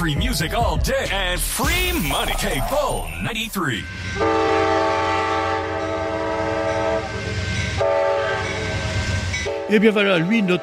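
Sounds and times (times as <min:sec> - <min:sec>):
speech: 0:00.0 - 0:04.8, 0:09.7 - 0:10.6
passenger train rumbling by: 0:00.0 - 0:10.6
passenger train horn multi-tone blasts: 0:03.9 - 0:09.8.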